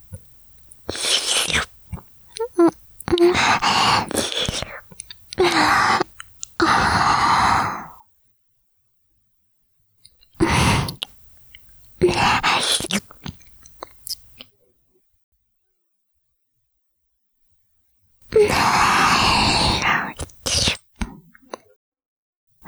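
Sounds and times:
ear licking: 0:00.0 - 0:07.3, 0:10.4 - 0:14.4, 0:18.3 - 0:21.2.

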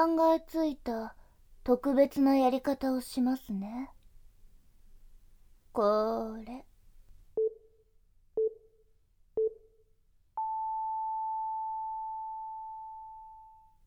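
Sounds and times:
speech: 0:00.0 - 0:04.0, 0:05.8 - 0:06.7
short beeps from a time signal app: 0:10.4 - 0:13.7.

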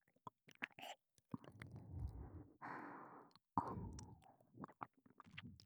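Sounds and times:
ASMR ear licking sounds: 0:00.5 - 0:05.6.

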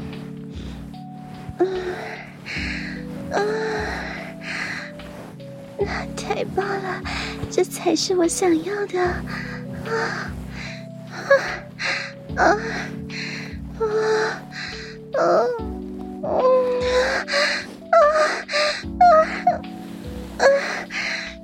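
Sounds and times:
heavy panting breaths: 0:01.7 - 0:07.5, 0:09.0 - 0:15.1, 0:16.8 - 0:19.7, 0:20.4 - 0:21.4
speech: 0:05.9 - 0:10.3.

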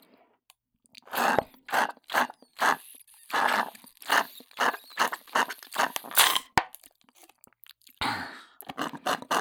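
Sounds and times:
paper juice carton: 0:01.1 - 0:07.4, 0:08.7 - 0:09.4.

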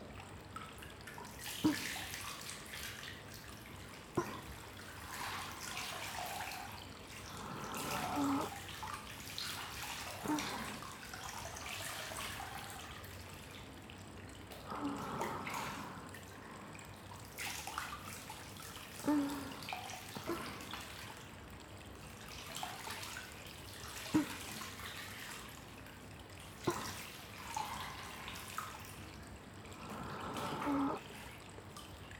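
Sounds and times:
pouring hot bath water: 0:00.0 - 0:32.1.

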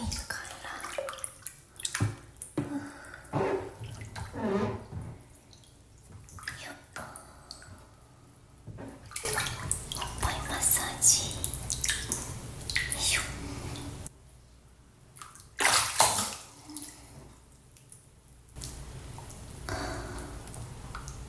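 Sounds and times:
shower running in a bath: 0:00.0 - 0:14.1, 0:18.6 - 0:21.2.

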